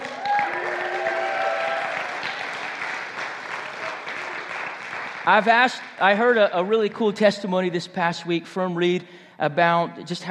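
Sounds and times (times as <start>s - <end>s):
audience applause: 0.0s - 5.7s
speech: 5.3s - 10.3s.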